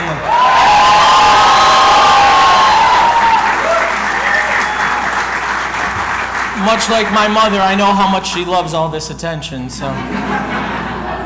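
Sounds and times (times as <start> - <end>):
large crowd applause: 0.0 - 7.8
cheering and high whoops: 0.2 - 5.3
speech: 6.7 - 10.7
laughter: 9.8 - 11.2.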